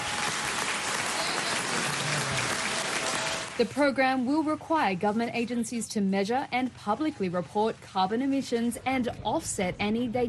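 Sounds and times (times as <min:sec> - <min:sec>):
applause in Parliament: 0:00.0 - 0:03.6
speech: 0:03.6 - 0:10.2.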